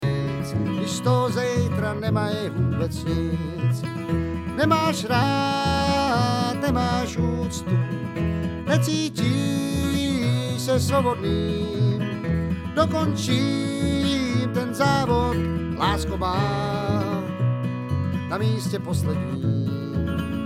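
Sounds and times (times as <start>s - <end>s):
bluegrass lead vocal: 0.0s - 17.6s, 18.2s - 20.3s.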